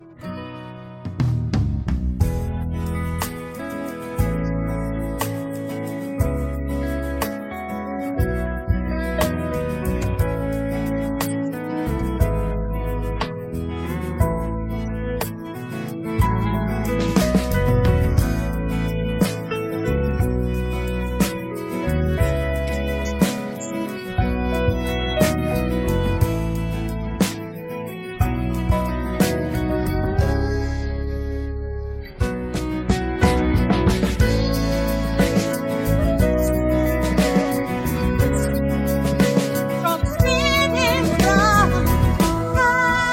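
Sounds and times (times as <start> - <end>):
instrumental music: 0.0 - 43.1.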